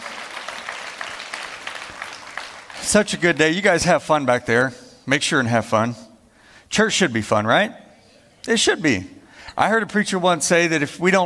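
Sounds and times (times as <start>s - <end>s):
audience clapping: 0.0s - 3.7s
speech: 2.8s - 6.0s, 6.7s - 7.8s, 8.4s - 11.2s.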